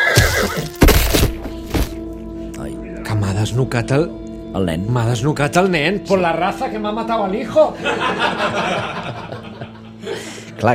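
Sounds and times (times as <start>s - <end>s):
startled horse neighing: 0.0s - 0.8s
speech: 0.6s - 0.8s, 3.4s - 9.2s, 10.0s - 10.7s
heavy thuds and knocks: 0.7s - 2.0s
laughter: 7.7s - 10.5s.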